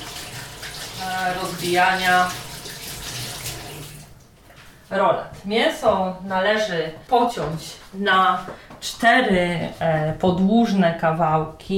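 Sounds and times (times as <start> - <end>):
washing hands under running tap: 0.0 - 4.3
speech: 1.0 - 2.4, 4.9 - 11.7.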